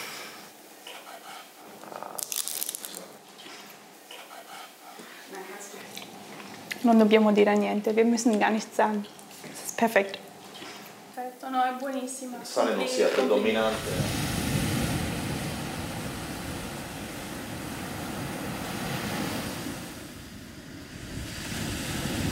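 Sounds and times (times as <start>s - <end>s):
speech: 6.8s - 9.2s, 9.8s - 10.3s, 11.4s - 14.2s
sea waves washing onto the shore: 13.5s - 22.2s
wind noise: 13.7s - 22.2s.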